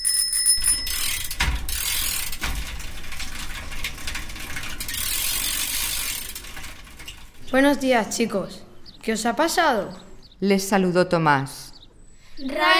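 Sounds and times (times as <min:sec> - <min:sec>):
bicycle bell ringing: 0:00.0 - 0:02.0
bicycle rolling by with ratcheting clicking wheels: 0:00.0 - 0:10.3
bicycle trailer rattling: 0:00.6 - 0:12.6
speech: 0:07.5 - 0:11.6, 0:12.4 - 0:12.7.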